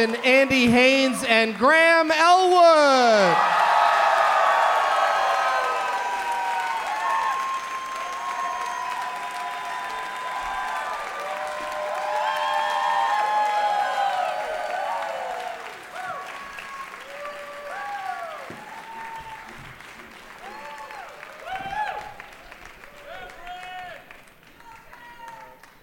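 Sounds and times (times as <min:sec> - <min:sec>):
speech: 0:00.0 - 0:03.6
crowd cheering with high whoops and shouts: 0:00.0 - 0:19.7, 0:20.4 - 0:22.4
crowd applause: 0:00.0 - 0:25.8.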